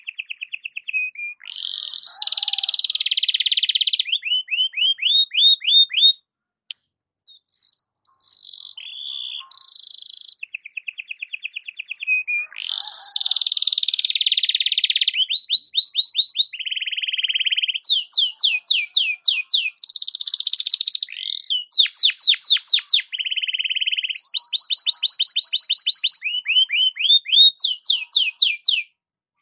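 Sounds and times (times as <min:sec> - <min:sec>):
Belgian canary singing varied tours: 0:00.0 - 0:06.2, 0:07.2 - 0:28.9.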